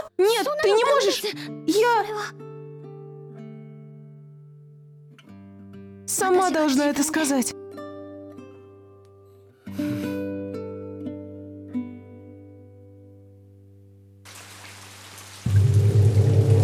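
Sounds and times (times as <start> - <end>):
speech: 0.2 - 2.5, 6.1 - 7.6
rain falling: 14.3 - 16.6.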